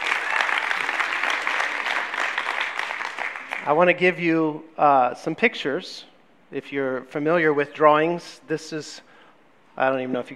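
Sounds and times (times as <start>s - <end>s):
audience clapping: 0.0s - 4.0s
speech: 3.6s - 9.1s, 9.8s - 10.3s.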